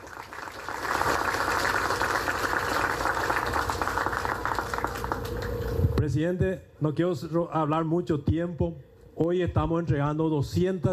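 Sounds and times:
crowd clapping: 0.0s - 5.8s
speech: 6.1s - 10.9s.

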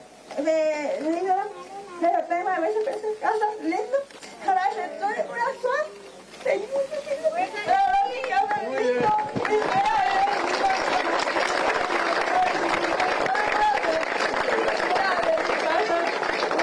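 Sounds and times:
voices talking: 0.5s - 16.6s
audience applause: 7.7s - 16.6s.

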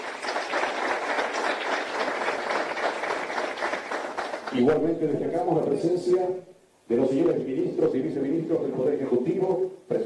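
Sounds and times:
audience applause: 0.0s - 4.7s
speech: 4.5s - 10.0s.

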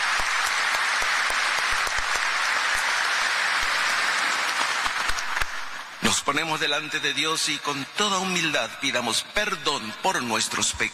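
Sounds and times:
audience applauding: 0.0s - 6.3s
speech: 6.2s - 10.9s.

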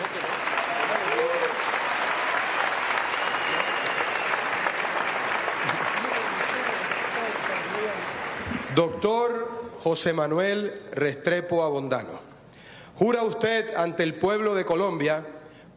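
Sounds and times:
sustained applause from a large audience: 0.0s - 9.0s
speech: 8.8s - 12.2s, 13.0s - 15.7s.

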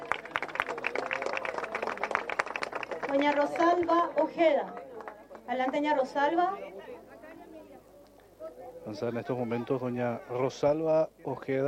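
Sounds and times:
audience applause: 0.0s - 5.5s
speech: 3.1s - 4.8s, 5.5s - 6.7s, 8.9s - 11.6s.

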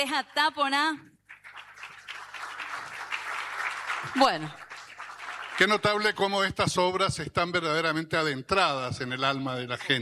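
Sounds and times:
speech: 0.0s - 1.1s, 4.0s - 4.6s, 5.6s - 10.0s
audience applause: 1.3s - 6.5s.

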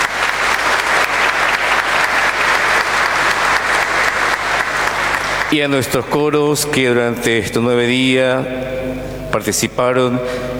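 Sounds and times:
audience applause: 0.0s - 5.9s
speech: 5.5s - 10.5s.

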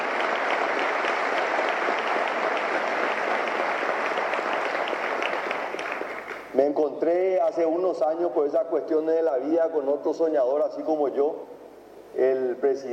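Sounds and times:
audience applause: 0.0s - 6.6s
speech: 6.6s - 11.5s, 12.2s - 12.9s.

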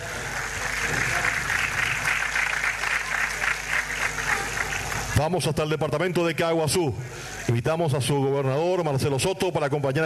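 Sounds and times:
audience applause: 0.0s - 5.2s
speech: 5.2s - 10.0s.

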